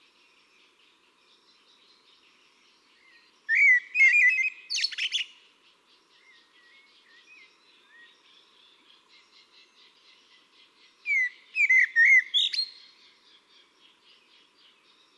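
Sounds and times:
Eurasian blackbird singing: 0.2s - 15.1s.

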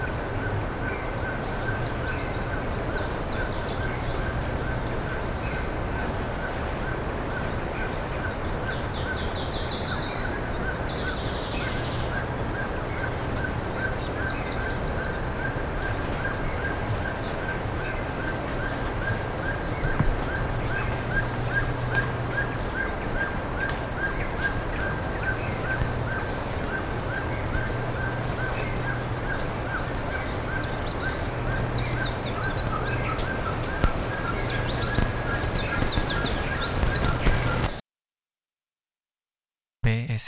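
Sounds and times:
steady low hum: 0.0s - 37.8s
birds chirping thin notes: 0.1s - 37.8s.

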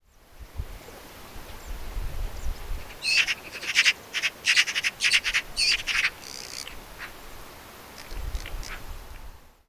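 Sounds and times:
steady background hiss: 0.0s - 9.6s
Eurasian magpie chattering: 2.9s - 6.8s.

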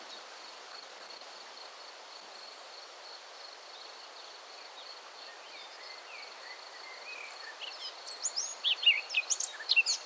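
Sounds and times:
Eurasian blackcap Sylvia atricapilla warbling song: 5.8s - 10.0s.

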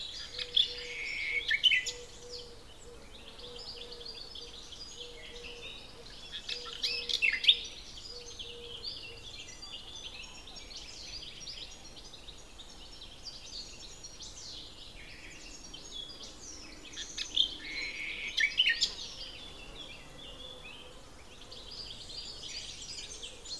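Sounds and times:
common nightingale singing: 0.0s - 23.5s.

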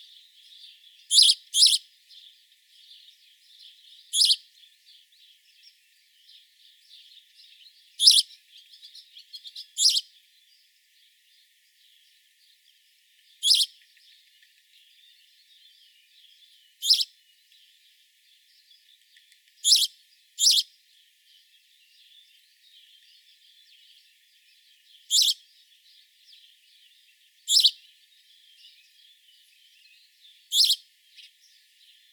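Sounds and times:
house sparrow sharp chirps: 0.0s - 32.1s
soft twittering: 4.1s - 4.4s, 8.0s - 10.0s, 13.4s - 14.1s, 25.1s - 25.4s, 27.4s - 27.8s, 30.5s - 31.4s.

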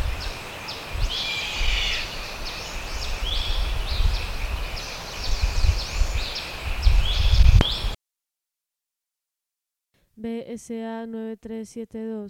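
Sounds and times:
bird chirping: 0.0s - 8.0s
wind rumble: 0.0s - 8.0s
speech: 10.4s - 12.2s.

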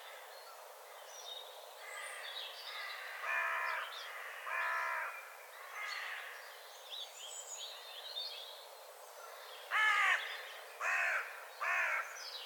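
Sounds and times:
carrion crow Corvus corone giving harsh hoarse caws: 1.9s - 6.3s, 9.7s - 10.3s, 10.8s - 12.1s.

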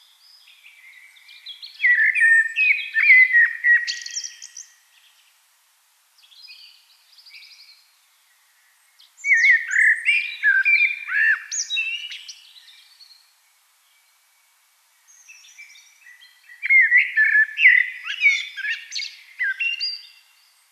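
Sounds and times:
Eurasian blackbird song: 0.0s - 5.4s, 6.2s - 20.7s.

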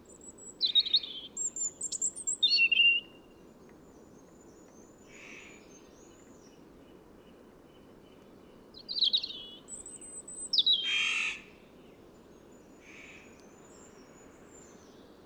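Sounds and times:
European robin Erithacus rubecula singing: 0.1s - 3.2s, 8.8s - 11.2s.

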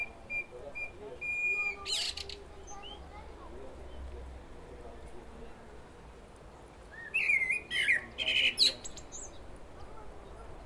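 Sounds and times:
common blackbird song: 0.0s - 3.2s, 6.5s - 10.6s.

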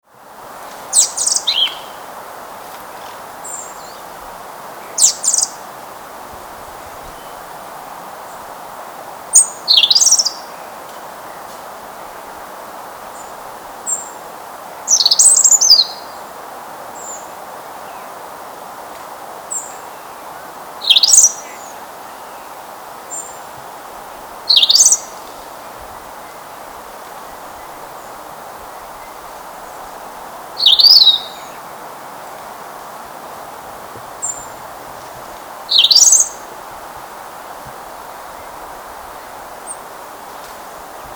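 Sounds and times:
soft steady hiss: 0.0s - 41.1s
European robin singing: 0.9s - 5.8s, 6.6s - 7.5s, 9.3s - 11.6s, 13.1s - 16.3s, 19.5s - 36.9s.

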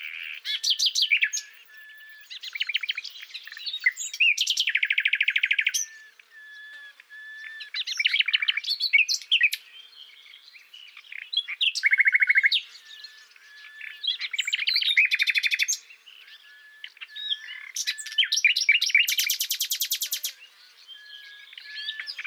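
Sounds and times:
common nightingale singing: 0.0s - 22.2s.

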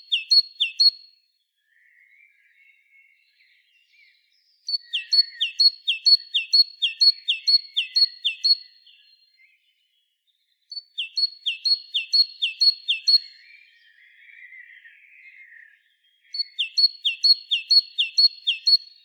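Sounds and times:
great tit singing: 0.0s - 1.0s, 4.0s - 9.5s, 10.7s - 19.0s.

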